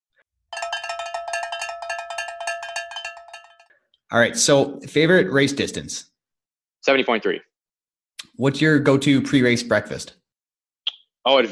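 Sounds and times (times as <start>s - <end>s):
metallic timer start bell ringing: 0.5s - 3.8s
speech: 4.1s - 6.1s, 6.9s - 7.5s, 8.3s - 10.2s, 11.2s - 11.4s.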